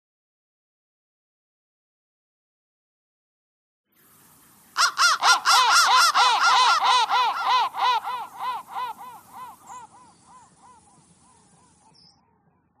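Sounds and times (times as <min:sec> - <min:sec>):
crow: 0:04.8 - 0:12.7.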